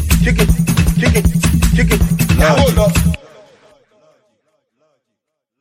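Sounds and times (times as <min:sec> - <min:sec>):
music beat: 0:00.1 - 0:03.2.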